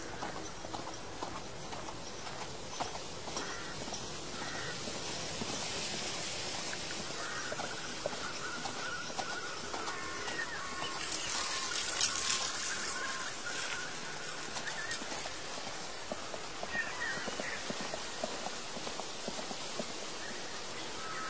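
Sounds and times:
horse hooves clip-clopping on an old road: 0:00.0 - 0:21.2
fallen leaves rustling: 0:03.6 - 0:21.2.

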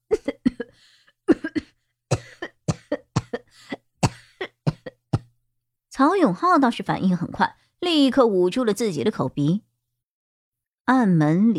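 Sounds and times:
person coughing from choking fumes: 0:00.1 - 0:05.3
speech: 0:06.0 - 0:09.7, 0:10.9 - 0:11.5.

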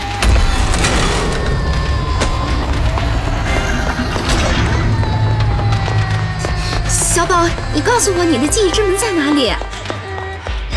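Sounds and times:
rumbling and clattering: 0:00.1 - 0:10.6
object smashed onto someone's head: 0:00.2 - 0:06.9
speech: 0:07.3 - 0:09.7.

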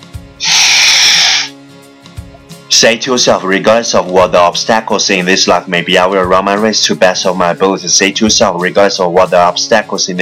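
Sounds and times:
deep breath in: 0:00.4 - 0:01.6
speech: 0:02.8 - 0:10.2.

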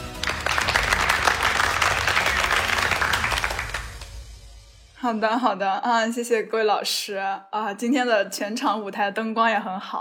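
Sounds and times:
applause: 0:00.0 - 0:04.4
speech: 0:05.0 - 0:10.0.

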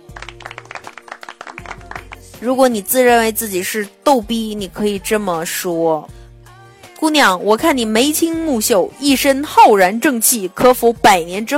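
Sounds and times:
applause: 0:00.0 - 0:02.4
speech: 0:02.4 - 0:06.2, 0:07.0 - 0:11.5.

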